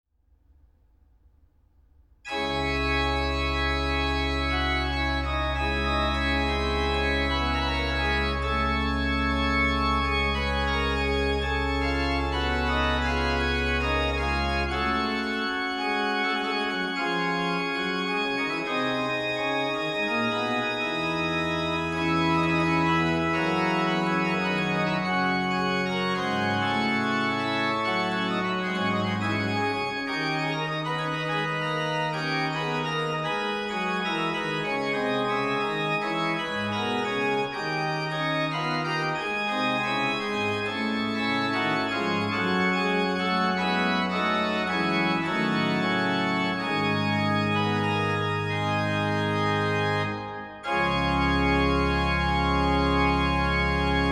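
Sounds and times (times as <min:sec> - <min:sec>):
organ toccata: 0:02.3 - 0:54.1.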